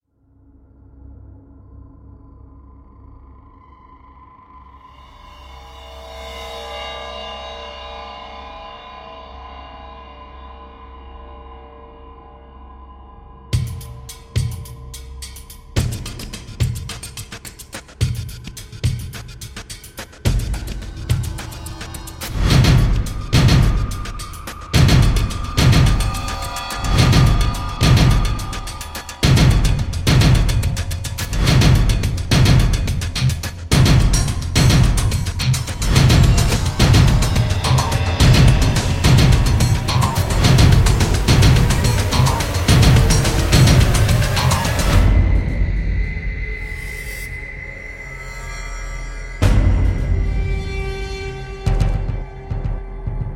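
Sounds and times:
drum effects: 0:13.6 - 0:46.0, 0:49.4 - 0:53.3.

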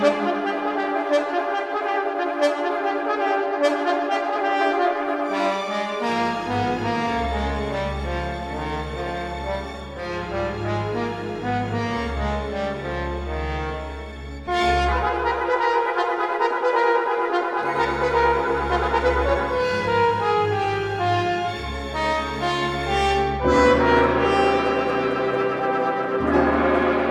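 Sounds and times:
orchestra playing a concerto: 0:00.0 - 0:27.0
trombone concerto solo: 0:00.0 - 0:27.0.

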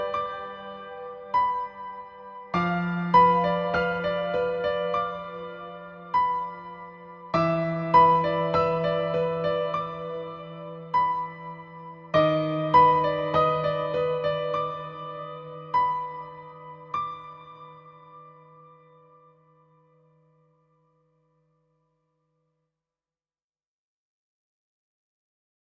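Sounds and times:
piano music: 0:00.0 - 0:19.4.

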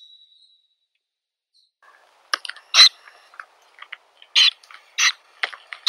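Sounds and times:
Aegolius funereus boreal owl calling: 0:01.9 - 0:05.8.

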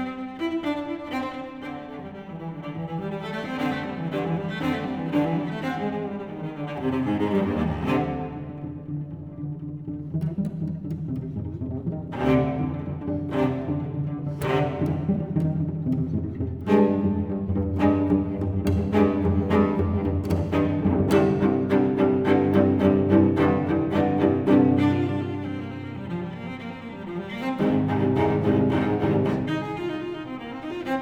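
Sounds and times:
solo cello suite: 0:00.0 - 0:30.9.

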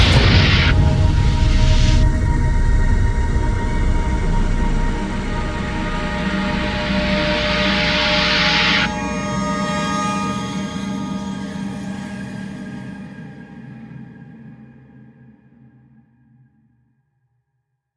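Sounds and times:
instrumental low percussion: 0:00.0 - 0:13.4.

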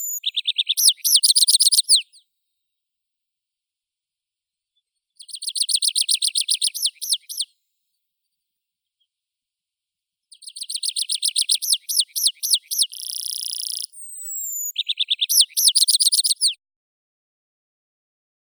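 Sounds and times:
tree pipit Anthus trivialis singing: 0:00.0 - 0:02.1, 0:05.2 - 0:07.5, 0:10.4 - 0:16.6.

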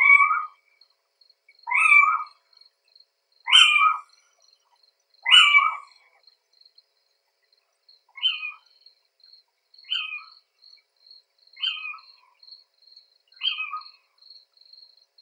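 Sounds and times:
little owl Athene noctua calling: 0:00.0 - 0:00.6, 0:01.6 - 0:02.4, 0:03.5 - 0:04.1, 0:05.2 - 0:06.0, 0:08.2 - 0:08.6, 0:09.9 - 0:10.3, 0:11.6 - 0:12.1, 0:13.4 - 0:14.0.

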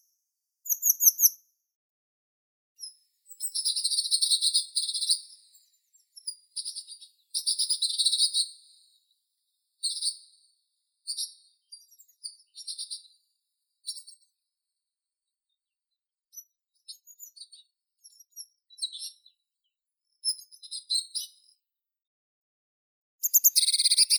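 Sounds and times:
blue tit Cyanistes caeruleus: 0:00.0 - 0:01.4, 0:02.8 - 0:09.2, 0:09.8 - 0:14.4, 0:16.3 - 0:19.5, 0:20.2 - 0:21.5, 0:23.2 - 0:24.1.

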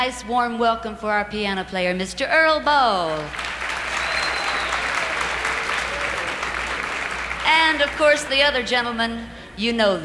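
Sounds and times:
speech: 0:00.0 - 0:03.6, 0:07.5 - 0:10.0
audience applause: 0:03.2 - 0:08.4.

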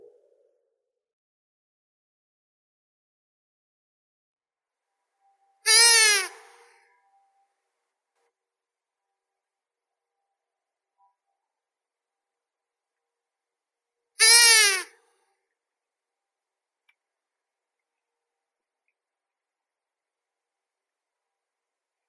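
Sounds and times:
long-eared owl Asio otus calling: 0:05.7 - 0:06.6, 0:14.2 - 0:14.9.

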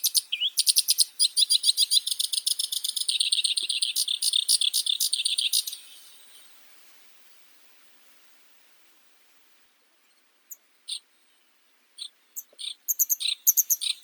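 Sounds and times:
black-browed reed warbler Acrocephalus bistrigiceps singing: 0:00.0 - 0:06.6, 0:12.0 - 0:14.0.

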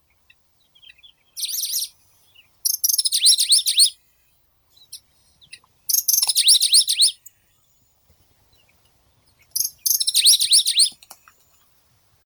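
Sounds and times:
Locustella pleskei singing: 0:00.1 - 0:04.0, 0:04.7 - 0:07.6, 0:08.4 - 0:11.0.

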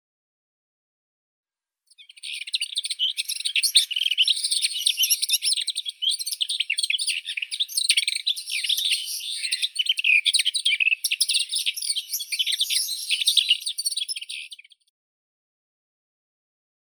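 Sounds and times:
Sylvia curruca warbler: 0:01.9 - 0:14.9.

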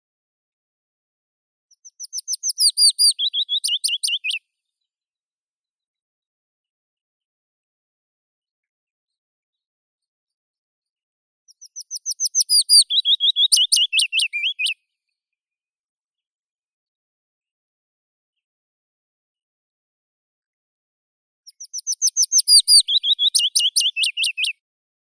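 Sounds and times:
Phylloscopus trochilus willow warbler singing: 0:01.8 - 0:04.4, 0:11.6 - 0:14.8, 0:21.5 - 0:24.5.

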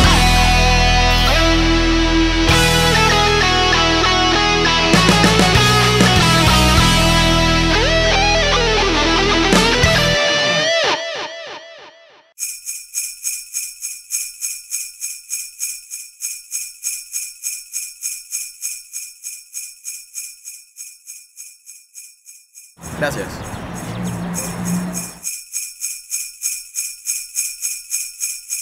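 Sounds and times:
heavy metal Christmas music: 0:00.0 - 0:11.2.

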